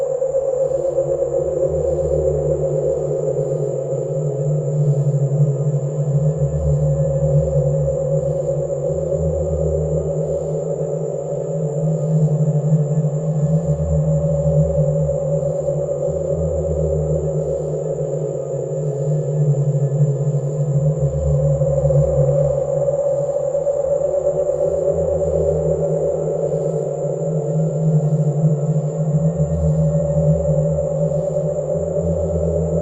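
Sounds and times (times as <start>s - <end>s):
eerie night ambience: 0.0s - 32.8s.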